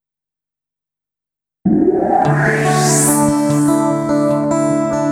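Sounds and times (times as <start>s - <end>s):
radio jingle: 1.7s - 5.0s.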